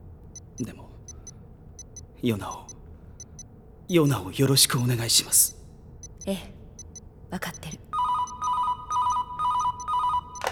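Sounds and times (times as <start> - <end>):
speech: 0.6 - 0.9, 2.2 - 2.7, 3.9 - 5.6, 6.3 - 6.6, 7.3 - 7.8
telephone ringing with warbling electronic tones: 8.0 - 10.4.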